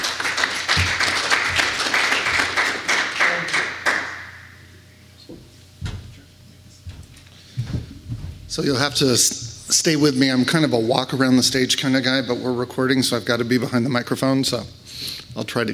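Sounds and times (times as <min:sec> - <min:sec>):
audience applauding a speaker at a cloud computing conference: 0:00.0 - 0:04.4
thumps and knocks: 0:05.8 - 0:06.2, 0:06.9 - 0:08.6
speech: 0:08.6 - 0:14.8, 0:15.4 - 0:15.7.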